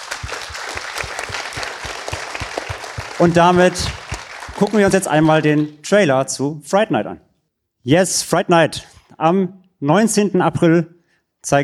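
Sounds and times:
audience applause: 0.0s - 5.8s
speech: 3.2s - 4.0s, 4.6s - 11.6s.

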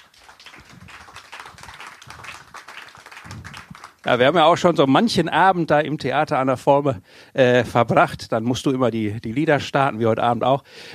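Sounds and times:
crowd applauding: 0.0s - 4.4s
speech: 4.0s - 10.9s.

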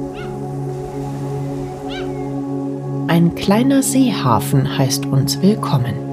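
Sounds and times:
seagull cries: 0.1s - 0.4s, 1.7s - 2.3s
speech: 3.1s - 6.0s.

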